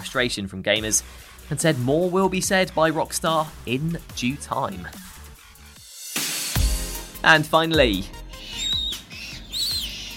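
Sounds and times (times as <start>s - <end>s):
speech: 0.0s - 5.1s, 7.2s - 8.2s
baby Humboldt penguin chicks at London Zoo peeping: 8.3s - 10.1s.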